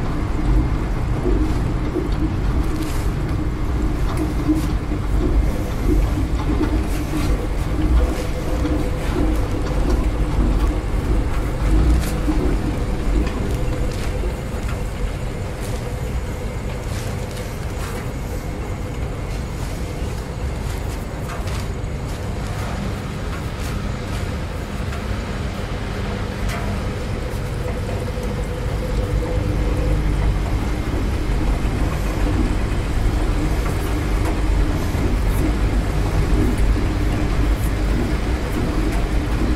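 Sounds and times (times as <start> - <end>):
laundry room sounds: 0.0 - 39.5.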